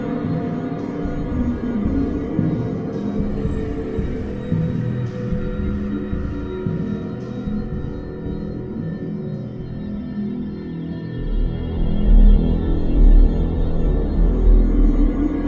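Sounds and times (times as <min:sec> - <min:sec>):
music of awe and wonderment: 0:00.0 - 0:15.4.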